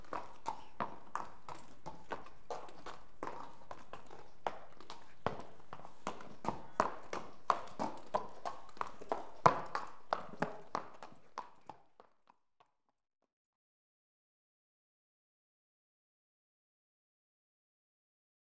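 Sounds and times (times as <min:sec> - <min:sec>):
horse walking on cobblestones: 0:00.0 - 0:12.4.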